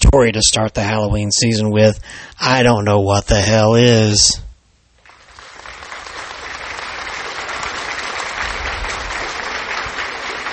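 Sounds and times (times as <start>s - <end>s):
speech: 0.1s - 4.4s
applause: 5.0s - 10.5s.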